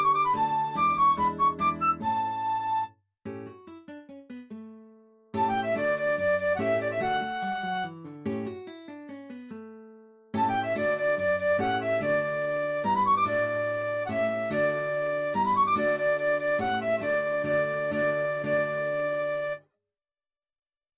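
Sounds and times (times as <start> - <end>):
slow classical piece: 0.0 - 2.9, 5.4 - 8.6, 10.4 - 19.6.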